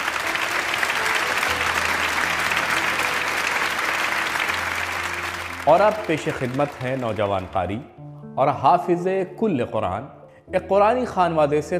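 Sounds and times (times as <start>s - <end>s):
loud applause from audience: 0.0s - 7.8s
speech: 5.6s - 11.7s.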